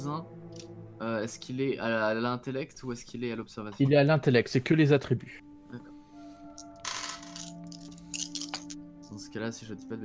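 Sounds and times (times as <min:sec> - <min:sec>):
speech: 0:00.0 - 0:00.4, 0:01.0 - 0:05.9, 0:09.2 - 0:10.0
four dice clattering on a hard surface: 0:06.8 - 0:08.8.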